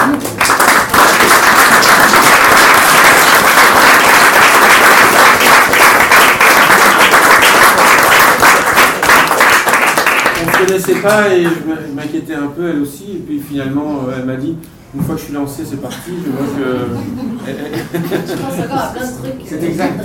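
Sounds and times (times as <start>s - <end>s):
audience applauding: 0.0s - 11.4s
speech: 10.8s - 20.0s
laughter: 16.2s - 19.0s.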